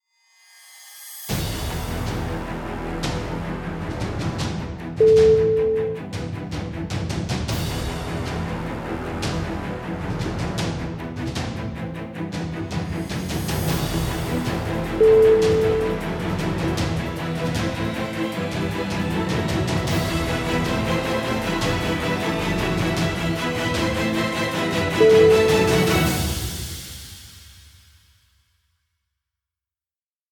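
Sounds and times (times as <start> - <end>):
epic intense trailer intro music: 1.3 - 27.4.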